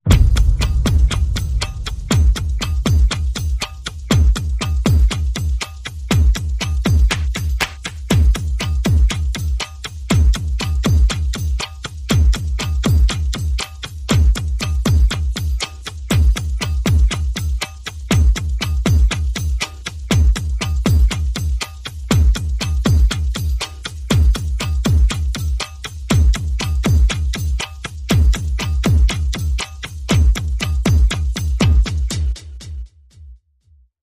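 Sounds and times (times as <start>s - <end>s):
percussion: 0.0s - 33.7s.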